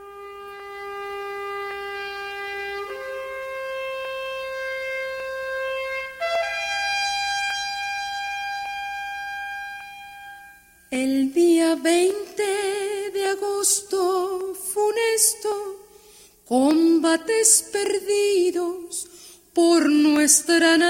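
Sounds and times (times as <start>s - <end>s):
recorded song with long held melodic notes: 0.0s - 20.8s
speech: 11.0s - 12.6s, 17.4s - 18.8s, 19.6s - 20.8s.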